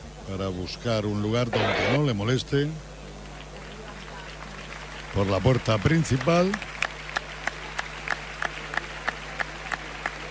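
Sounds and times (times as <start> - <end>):
speech: 0.3 - 2.9, 5.2 - 6.7
bullring crowd applauding: 3.3 - 10.3.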